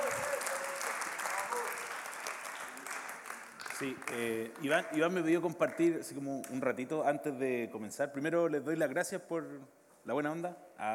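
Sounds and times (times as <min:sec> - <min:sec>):
audience applause: 0:00.0 - 0:05.0
speech: 0:03.8 - 0:10.9.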